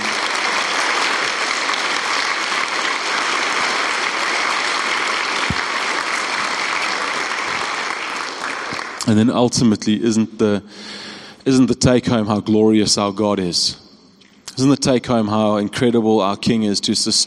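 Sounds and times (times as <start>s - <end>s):
audience applause: 0.0s - 9.2s
speech: 9.1s - 13.8s, 14.6s - 17.2s.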